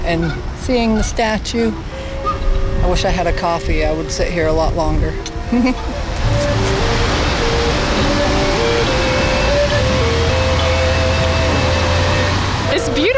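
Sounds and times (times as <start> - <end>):
speech: 0.1 - 2.0, 2.8 - 6.2
soft sustained musical notes: 1.9 - 13.1
park fountain water rushing: 2.8 - 13.1.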